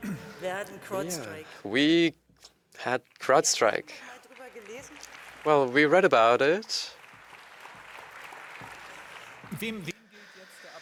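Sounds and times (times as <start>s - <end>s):
speech: 0.4s - 7.0s, 9.5s - 10.0s
applause: 3.9s - 10.0s.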